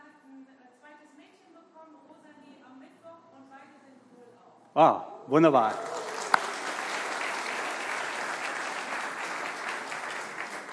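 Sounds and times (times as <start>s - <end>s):
speech: 4.8s - 5.9s
audience applause: 5.5s - 10.7s.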